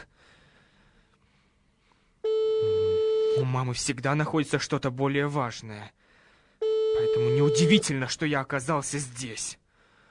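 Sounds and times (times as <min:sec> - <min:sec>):
telephone ringback tone: 0:02.2 - 0:03.4, 0:06.6 - 0:07.9
speech: 0:03.4 - 0:06.0, 0:07.1 - 0:09.6.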